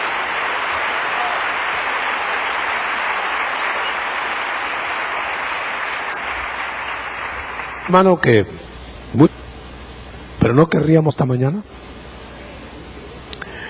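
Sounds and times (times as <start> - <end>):
church congregation applauding loudly: 0.0 - 8.5
speech: 7.9 - 9.4, 10.4 - 11.9.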